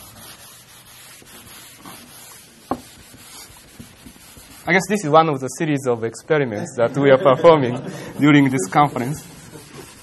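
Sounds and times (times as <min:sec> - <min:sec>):
chalk writing on a wet blackboard: 0:00.0 - 0:05.2, 0:08.2 - 0:10.0
speech: 0:04.7 - 0:09.4
laughter: 0:06.6 - 0:10.0.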